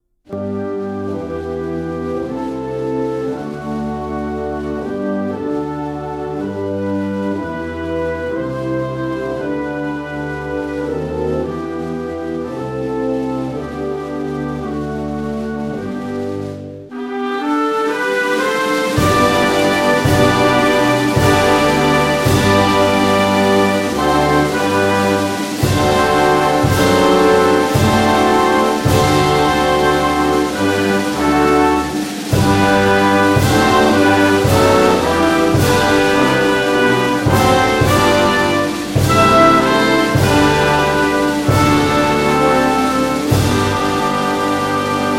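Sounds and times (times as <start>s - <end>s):
anthem music: 0.3s - 45.1s.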